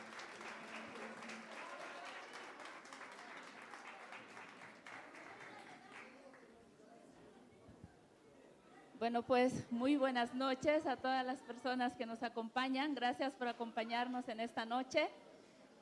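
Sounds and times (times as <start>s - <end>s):
audience applause: 0.0s - 6.4s
speech: 9.0s - 15.2s.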